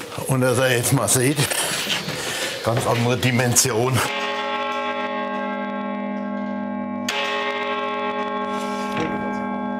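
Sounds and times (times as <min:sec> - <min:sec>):
speech: 0:00.3 - 0:01.9, 0:02.7 - 0:04.2
Stiftskirche carillon with 47 bells ringing: 0:04.0 - 0:09.7.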